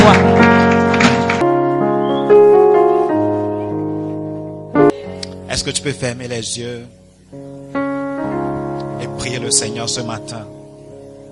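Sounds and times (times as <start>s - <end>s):
audience applauding: 0.0s - 1.5s
sustained keyboard or organ chords: 0.0s - 11.3s
speech: 5.6s - 7.4s, 9.2s - 10.6s.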